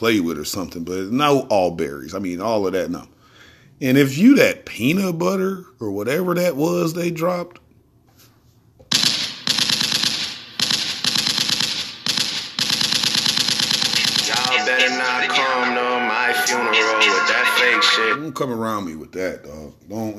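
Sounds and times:
speech: 0.0s - 3.2s, 3.8s - 7.6s, 18.2s - 20.1s
rapid gunfire sound effect: 8.9s - 14.6s
voice-like tonal layer: 14.2s - 18.2s.

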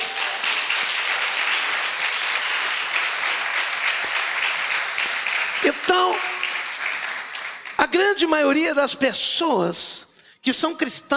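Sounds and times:
audience applause: 0.0s - 8.0s
speech: 8.0s - 11.1s.

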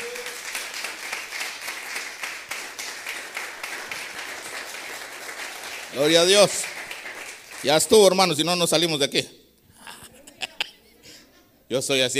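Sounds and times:
audience clapping: 0.0s - 8.4s
speech: 5.9s - 6.7s, 7.6s - 9.4s, 11.7s - 12.1s
laughter: 9.8s - 10.9s.

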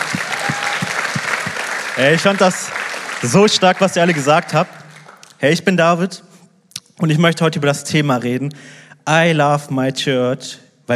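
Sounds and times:
audience applause: 0.0s - 5.3s
speech: 2.0s - 4.8s, 5.4s - 6.3s, 7.0s - 10.9s.

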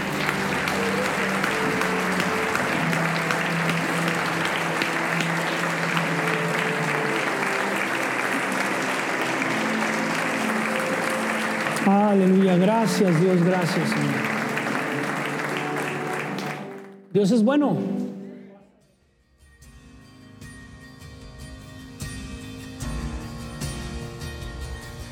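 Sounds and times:
audience giving loud applause: 0.0s - 17.1s
speech: 12.1s - 14.3s, 17.2s - 18.0s.

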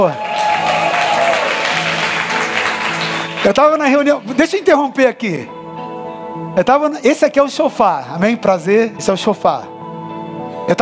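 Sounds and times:
speech: 0.0s - 0.2s, 3.4s - 5.6s, 6.6s - 9.7s, 10.7s - 10.8s
crowd applause: 0.0s - 3.8s.

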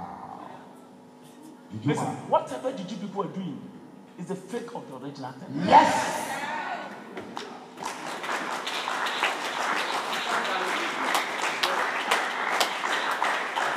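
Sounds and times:
speech: 1.7s - 6.2s
weak audience clapping: 7.2s - 13.7s.

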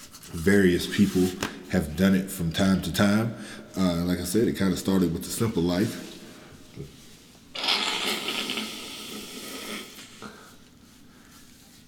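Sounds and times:
speech: 0.4s - 6.1s, 6.8s - 7.0s
nose blowing: 7.5s - 10.6s.

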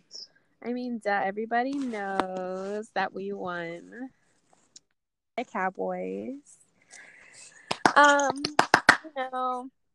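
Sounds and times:
speech: 0.6s - 4.2s, 5.4s - 6.6s, 8.0s - 9.8s
crowd hand clapping: 7.7s - 9.1s.

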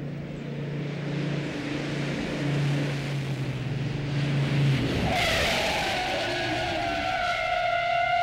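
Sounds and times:
car engine droning: 0.0s - 8.2s
car tires squealing skidding under hard braking: 4.8s - 8.2s.

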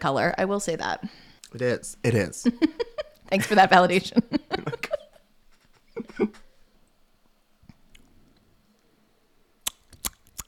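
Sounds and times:
speech: 0.0s - 4.4s, 6.2s - 6.4s
laughter: 2.5s - 6.4s
wet lip smacks while tasting a magenta-colored wine: 9.6s - 10.4s.

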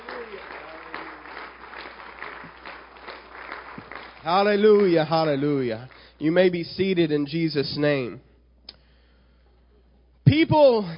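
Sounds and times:
crowd clapping hands: 0.0s - 6.6s
speech: 4.2s - 8.3s, 10.4s - 10.9s.

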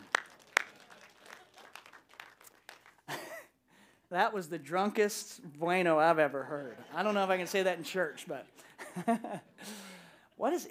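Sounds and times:
audience clapping: 0.0s - 3.2s
laughter: 0.7s - 1.8s, 6.3s - 10.1s
speech: 4.1s - 9.8s, 10.4s - 10.6s.

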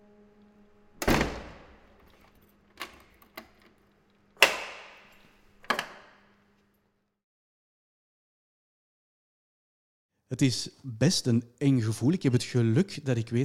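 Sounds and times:
heavy cell door slamming with a ringing metallic boom: 1.0s - 2.1s
cell door lock clanking and clicking: 1.0s - 6.3s
speech: 10.3s - 13.4s.

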